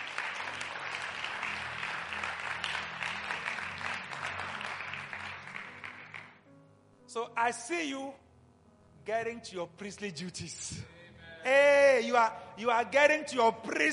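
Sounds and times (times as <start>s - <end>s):
audience clapping: 0.0s - 6.4s
speech: 7.2s - 8.2s, 9.0s - 13.9s.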